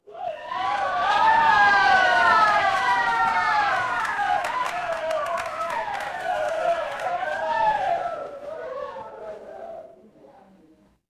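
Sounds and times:
crowd cheering: 0:00.0 - 0:10.0.

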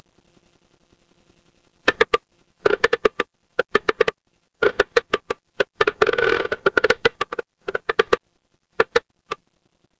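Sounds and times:
horror creak: 0:01.9 - 0:08.2, 0:08.8 - 0:09.0.

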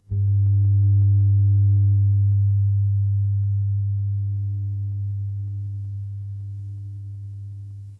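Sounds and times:
electric hum: 0:00.0 - 0:07.9.

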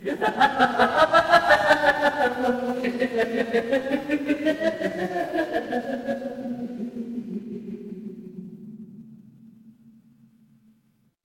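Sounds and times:
crowd laughing: 0:00.0 - 0:07.8.

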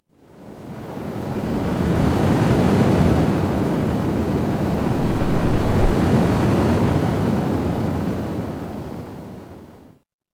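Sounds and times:
ocean ambience: 0:00.3 - 0:09.8.

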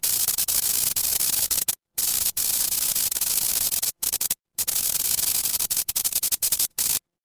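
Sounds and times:
fire electric spark: 0:00.0 - 0:07.0.

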